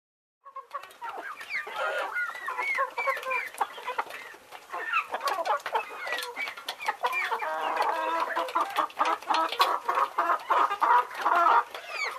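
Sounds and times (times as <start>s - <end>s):
birds calling in dense chatter: 0.4s - 12.1s.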